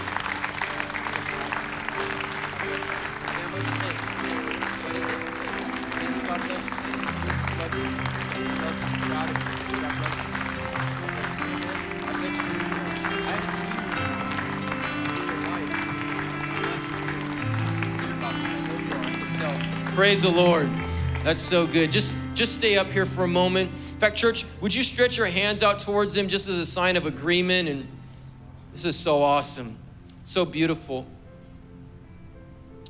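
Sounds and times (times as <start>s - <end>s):
church audience clapping: 0.0s - 22.5s
speech: 20.1s - 28.0s, 28.8s - 31.2s.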